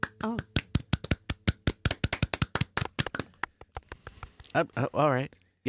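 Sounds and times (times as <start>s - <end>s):
speech: 0.2s - 0.5s, 4.5s - 5.6s
applause: 1.9s - 4.4s.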